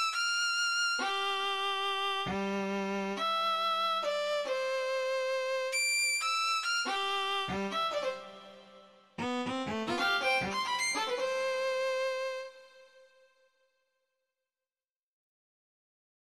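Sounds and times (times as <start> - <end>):
violin waltz: 1.0 - 13.0.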